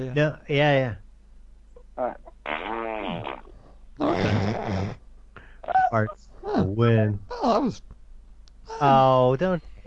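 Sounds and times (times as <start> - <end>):
speech: 0.0 - 1.0, 2.0 - 2.2, 4.0 - 5.0, 5.9 - 7.9, 8.7 - 9.8
loud buzzy fart noises: 2.0 - 5.0.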